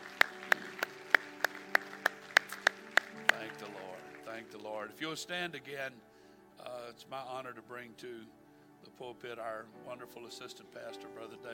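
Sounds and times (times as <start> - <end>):
hand claps: 0.0 - 4.7
speech: 4.4 - 6.1, 6.7 - 11.5.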